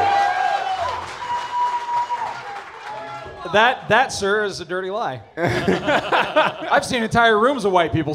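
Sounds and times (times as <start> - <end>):
audience standing ovation applause: 0.0 - 3.5
people cheering: 0.0 - 3.8
speech: 3.5 - 8.1
laughter: 5.4 - 7.0.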